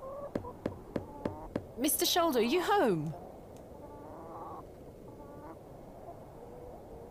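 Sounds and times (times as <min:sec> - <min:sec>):
knocking on a door: 0:00.3 - 0:01.7
speech: 0:01.8 - 0:03.2.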